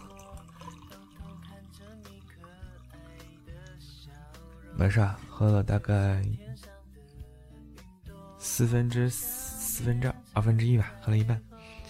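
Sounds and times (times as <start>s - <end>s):
red wine poured into a glass tumbler: 0.0s - 5.4s
speech: 4.8s - 6.7s, 8.6s - 11.5s.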